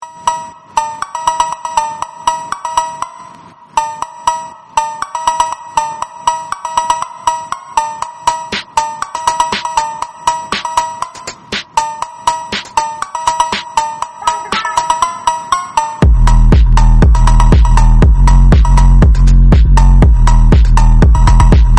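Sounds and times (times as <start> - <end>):
yoga instrumental music: 0.0 - 21.7.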